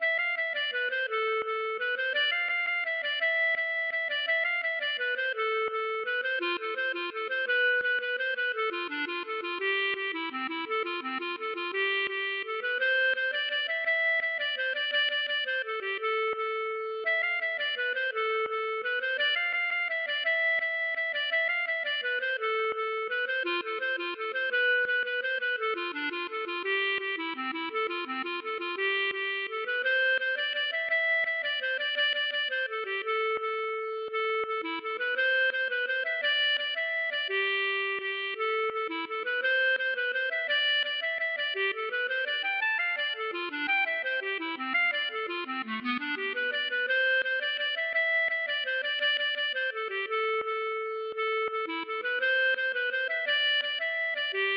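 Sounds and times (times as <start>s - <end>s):
mazurka: 0.0s - 54.5s.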